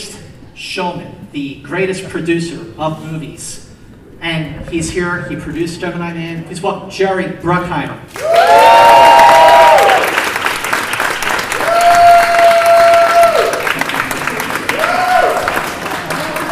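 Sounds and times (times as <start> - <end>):
speech: 0.6 - 3.6, 4.2 - 8.6
applause and cheering from a talk show studio audience: 8.1 - 16.4
fan whooping and hollering backstage: 8.2 - 10.1, 11.6 - 13.7, 14.7 - 15.5.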